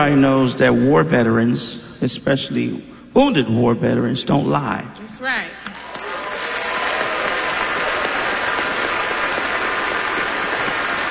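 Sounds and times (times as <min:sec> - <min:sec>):
speech: 0:00.0 - 0:05.7
audience applause: 0:05.7 - 0:11.0.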